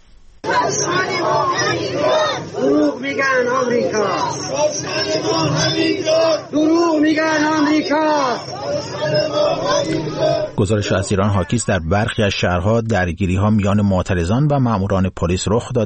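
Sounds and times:
protest crowd chanting slogans: 0.4 - 11.0
speech: 0.7 - 15.8.

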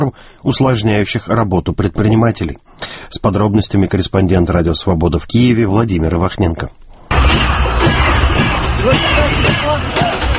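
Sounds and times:
speech: 0.0 - 6.8
protesters shouting shame: 7.1 - 10.3
protesters beating sticks on buckets: 7.2 - 10.3.

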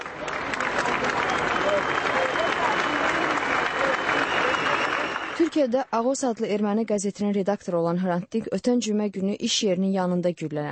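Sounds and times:
crowd voices: 0.0 - 5.5
crowd clapping at Hrant Dink's funeral procession: 0.0 - 6.4
speech: 5.6 - 10.6.

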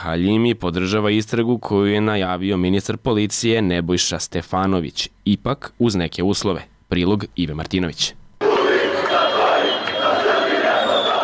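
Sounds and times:
speech: 0.0 - 8.2
football fans chanting after an Armenia versus Albania match: 8.4 - 11.2.

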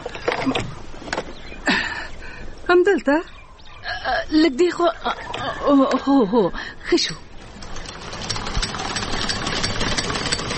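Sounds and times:
speech: 0.4 - 0.7, 2.7 - 3.4, 4.0 - 7.2
sewing machine running for home tailoring: 7.6 - 10.5.

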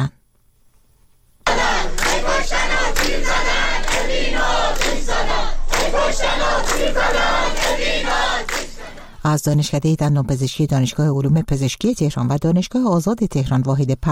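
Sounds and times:
students chanting protest slogans: 1.5 - 9.2
speech: 5.9 - 8.6, 9.2 - 14.1.

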